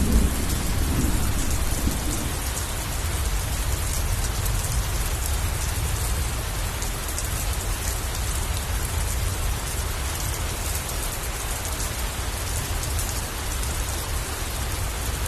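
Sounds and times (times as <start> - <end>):
low thunder rumble: 0.0 - 5.2
heavy rain: 0.0 - 15.2.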